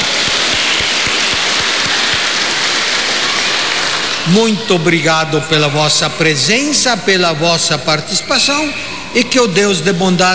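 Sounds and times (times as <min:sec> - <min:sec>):
crowd clapping in loud dense applause: 0:00.0 - 0:05.0
speech: 0:04.3 - 0:10.3.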